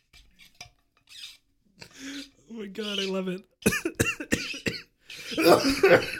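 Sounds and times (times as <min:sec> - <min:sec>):
water bottle squeaking: 0:00.1 - 0:01.4
speech: 0:02.6 - 0:04.5, 0:05.3 - 0:06.1
laughter: 0:05.4 - 0:06.1.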